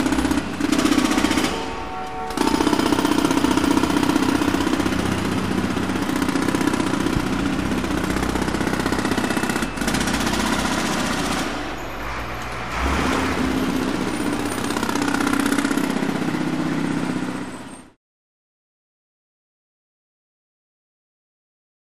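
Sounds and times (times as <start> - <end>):
jackhammer at a large construction site: 0.0 - 18.0.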